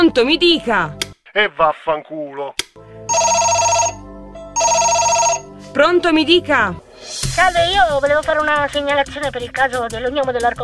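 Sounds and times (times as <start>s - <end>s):
speech: 0.0s - 2.6s, 5.8s - 10.6s
telephone ringing: 3.1s - 4.0s, 4.6s - 5.5s.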